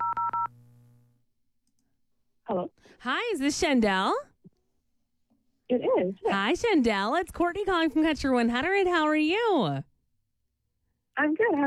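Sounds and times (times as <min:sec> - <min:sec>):
telephone keypad dialing beeps: 0:00.0 - 0:00.5
speech: 0:02.5 - 0:04.3, 0:05.7 - 0:09.9, 0:11.2 - 0:11.6.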